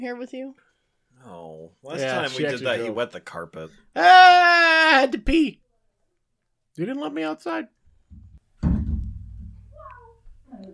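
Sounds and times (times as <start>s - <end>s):
speech: 0.0s - 5.6s, 6.8s - 8.2s
knock of a bottle being handled: 8.1s - 9.8s.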